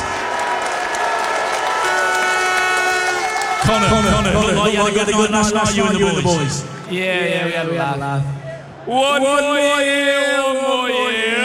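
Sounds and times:
audience applause welcoming a football player: 0.0s - 5.2s
audience cheering a football player: 0.0s - 7.0s
speech: 3.7s - 11.4s.

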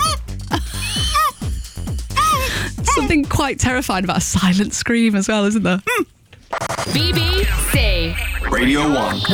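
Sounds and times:
voice imitating celebratory squeaks: 0.0s - 3.1s
speech: 3.0s - 9.3s.

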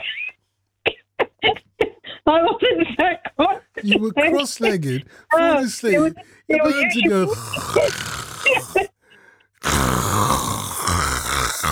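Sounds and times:
speech: 2.3s - 8.2s
person imitating snoring: 7.1s - 8.9s, 9.6s - 11.7s.

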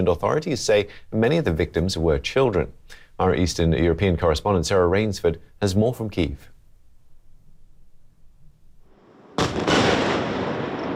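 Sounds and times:
speech: 0.0s - 6.5s
huge explosions from missile and drone strikes in Kyiv: 9.0s - 10.9s.

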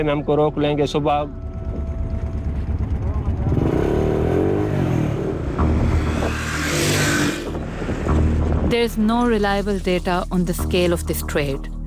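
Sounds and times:
speech: 0.0s - 1.4s, 8.7s - 11.7s
motorcycle riding at night through Sindh province, Pakistan: 0.6s - 8.7s.

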